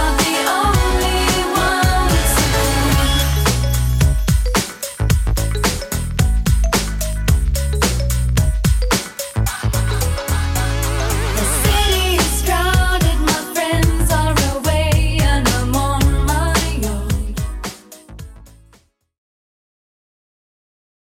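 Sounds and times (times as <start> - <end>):
clean 90s beat: 0.0 - 18.4.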